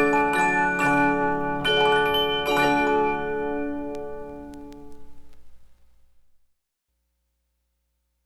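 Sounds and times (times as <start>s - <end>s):
music box: 0.0s - 4.7s.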